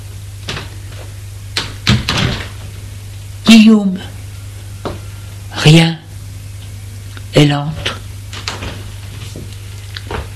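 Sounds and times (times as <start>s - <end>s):
bedroom door swinging open with clunk and rattle: 1.8s - 2.7s
speech: 3.6s - 4.2s, 5.6s - 6.0s, 7.4s - 7.9s.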